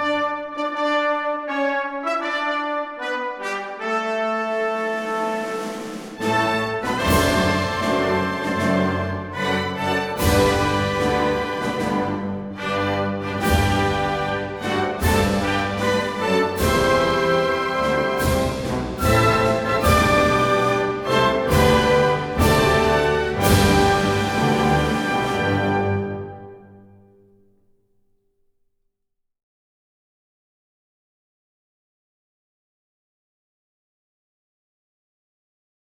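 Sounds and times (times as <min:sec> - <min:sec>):
national anthem: 0:00.0 - 0:26.8.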